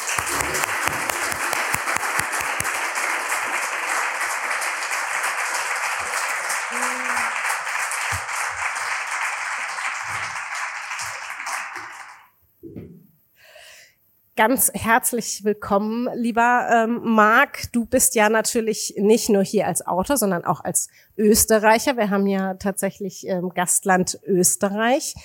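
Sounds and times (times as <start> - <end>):
audience applause for author Marc Elsberg at the Leipzig Book Fair 2023: 0.0 - 12.3
speech: 14.4 - 25.2.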